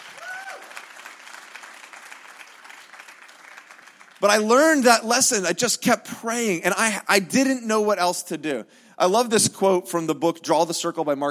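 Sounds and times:
audience applause: 0:00.0 - 0:04.8
speech: 0:04.2 - 0:11.2.

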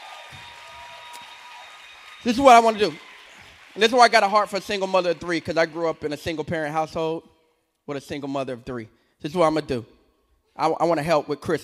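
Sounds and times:
crowd applauding: 0:00.0 - 0:06.8
speech: 0:02.2 - 0:03.0, 0:03.8 - 0:07.3, 0:07.9 - 0:10.0, 0:10.6 - 0:11.6.

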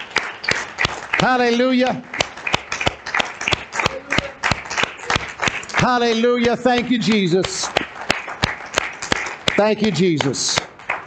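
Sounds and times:
audience clapping: 0:00.0 - 0:11.0
speech: 0:01.2 - 0:02.2, 0:05.8 - 0:07.8, 0:09.6 - 0:10.7.

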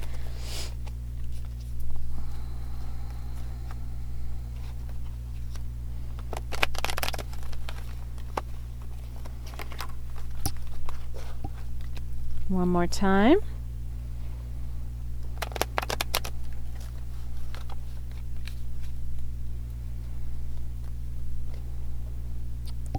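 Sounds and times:
steady low hum: 0:00.0 - 0:22.9
tarot cards being shuffled: 0:04.5 - 0:12.1, 0:15.2 - 0:19.3
speech: 0:12.5 - 0:13.5.

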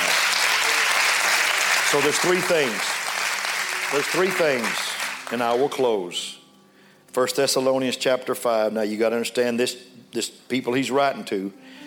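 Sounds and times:
crowd clapping: 0:00.0 - 0:05.8
speech: 0:01.9 - 0:02.9, 0:03.9 - 0:06.4, 0:07.1 - 0:11.8.

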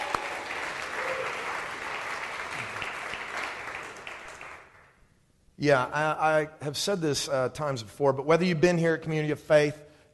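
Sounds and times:
church congregation clapping for first-time visitors: 0:00.0 - 0:05.0
speech: 0:05.6 - 0:09.8.

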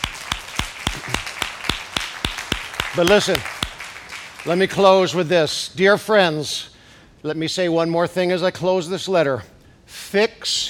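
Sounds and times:
audience clapping: 0:00.0 - 0:05.1
speech: 0:02.9 - 0:03.5, 0:04.4 - 0:10.6.

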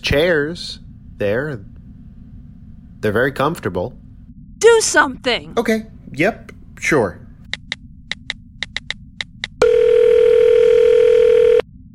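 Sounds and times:
speech: 0:00.1 - 0:01.8, 0:03.0 - 0:04.0, 0:04.6 - 0:07.2
keypad presses: 0:07.5 - 0:09.6
steady electronic phone tone: 0:09.6 - 0:11.7.

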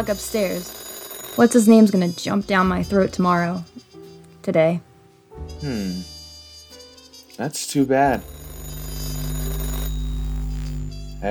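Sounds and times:
speech: 0:00.0 - 0:00.8, 0:01.4 - 0:03.8, 0:04.4 - 0:06.1, 0:07.4 - 0:08.4
telephone ringing: 0:00.0 - 0:03.7, 0:08.1 - 0:11.2.

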